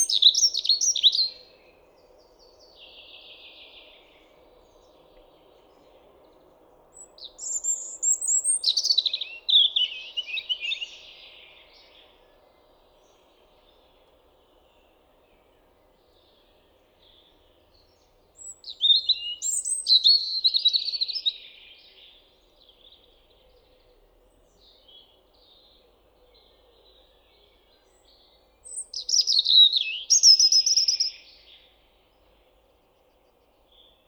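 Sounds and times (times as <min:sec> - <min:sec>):
European robin singing: 0:00.0 - 0:01.6, 0:07.0 - 0:12.2, 0:16.2 - 0:23.9, 0:24.5 - 0:34.0.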